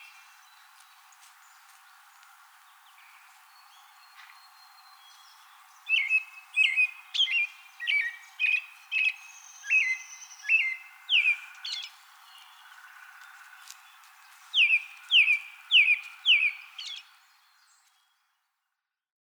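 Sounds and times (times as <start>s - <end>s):
American robin song with whistled caroling phrases: 0.0s - 18.2s.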